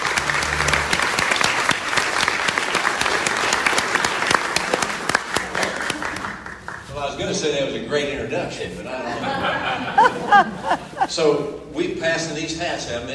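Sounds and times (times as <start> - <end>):
audience clapping to welcome a speaker at a political event: 0.0 - 7.0
speech: 7.2 - 13.1
laughter: 8.9 - 11.4.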